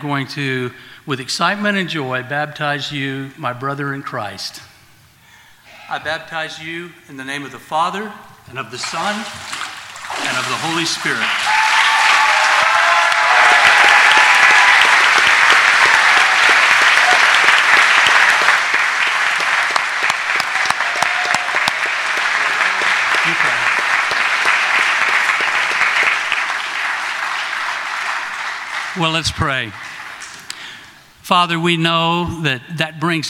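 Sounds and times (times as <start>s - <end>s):
speech: 0.0s - 4.7s, 5.9s - 11.6s, 29.0s - 29.9s, 31.3s - 33.2s
audience clapping after a baptism: 9.0s - 30.8s.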